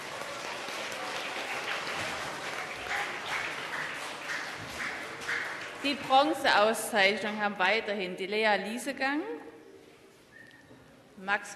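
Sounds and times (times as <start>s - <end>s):
audience applause: 0.0s - 6.4s
speech: 5.8s - 9.4s, 11.2s - 11.5s.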